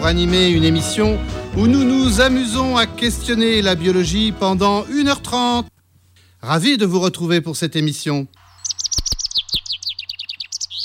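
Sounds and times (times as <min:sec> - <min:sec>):
speech: 0:00.0 - 0:05.7, 0:06.4 - 0:08.4
chaffinch singing: 0:08.4 - 0:10.8.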